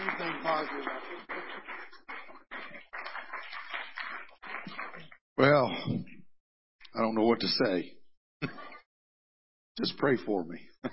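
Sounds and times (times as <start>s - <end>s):
audience clapping hands in praise: 0.0s - 5.2s
speech: 0.5s - 1.4s, 5.4s - 6.1s, 7.0s - 8.6s, 9.8s - 10.9s.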